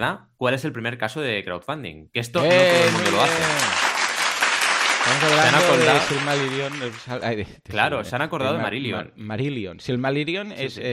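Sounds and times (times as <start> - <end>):
speech: 0.0 - 3.8, 5.1 - 10.9
laughter: 2.4 - 3.9, 5.0 - 7.0
hands clapping: 2.4 - 7.2.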